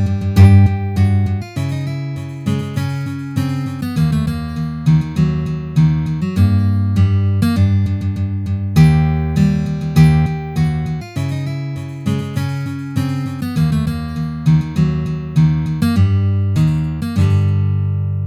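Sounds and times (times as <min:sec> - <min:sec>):
guitar playing a march: 0:00.0 - 0:18.2.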